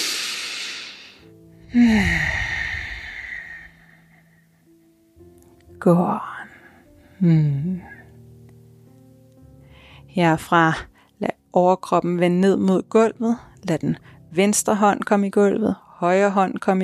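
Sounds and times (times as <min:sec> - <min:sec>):
deep full breath during yoga practice: 0:00.0 - 0:04.5, 0:09.6 - 0:10.1
speech: 0:01.7 - 0:02.4, 0:05.8 - 0:06.3, 0:07.2 - 0:07.9, 0:10.2 - 0:16.8.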